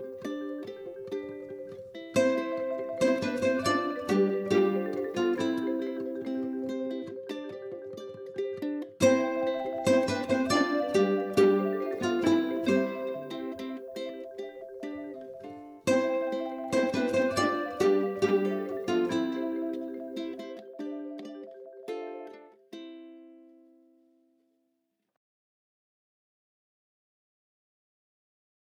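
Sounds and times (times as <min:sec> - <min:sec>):
quirky underscore music: 0:00.0 - 0:08.0, 0:09.0 - 0:22.3.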